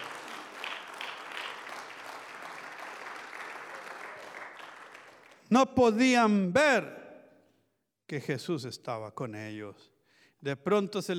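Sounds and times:
audience applauding: 0.0s - 5.4s
speech: 5.5s - 7.0s, 8.1s - 11.1s.

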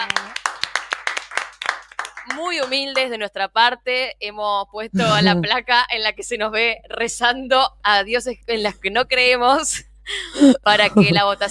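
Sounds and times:
applause: 0.0s - 3.1s
speech: 2.3s - 11.4s
laughter: 5.0s - 5.5s, 10.8s - 11.4s.

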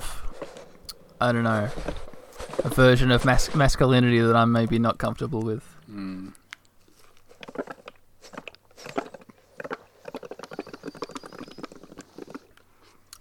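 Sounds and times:
speech: 1.2s - 2.0s, 2.6s - 6.4s
blowing bubbles in milk: 7.3s - 12.6s.

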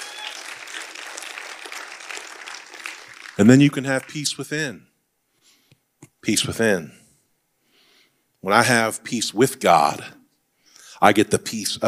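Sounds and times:
audience clapping hands: 0.0s - 4.5s
speech: 3.4s - 4.9s, 6.3s - 7.0s, 8.4s - 10.2s, 11.0s - 11.8s.

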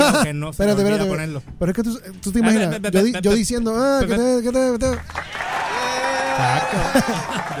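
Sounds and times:
laughter: 0.0s - 0.3s, 6.3s - 7.5s
speech: 0.2s - 7.5s
stadium applause: 4.9s - 7.5s.

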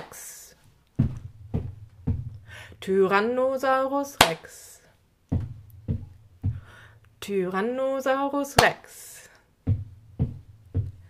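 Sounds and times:
foot stamps: 0.9s - 2.6s, 5.3s - 6.9s, 9.6s - 11.0s
speech: 2.8s - 4.7s, 7.2s - 9.1s
hand clap: 4.2s - 4.5s, 8.6s - 8.9s.

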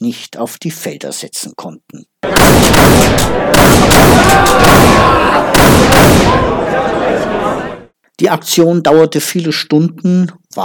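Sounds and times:
speech: 0.0s - 6.5s, 8.2s - 10.6s
gunshots: 2.2s - 6.6s
noisy commotion: 2.2s - 7.9s.

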